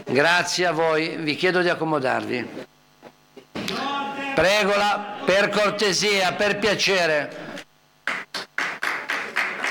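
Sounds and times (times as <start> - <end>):
speech: 0.1 - 2.7, 4.4 - 7.5
hand claps in an Italian city council chamber: 8.1 - 9.6.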